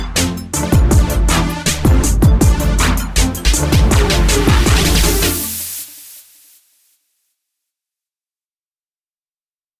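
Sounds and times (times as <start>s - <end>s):
groove music: 0.0s - 6.2s.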